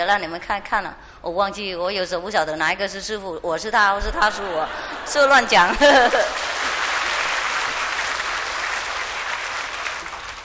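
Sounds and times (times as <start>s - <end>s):
speech: 0.0s - 6.5s
laughter: 4.2s - 7.8s
audience clapping: 6.0s - 10.4s.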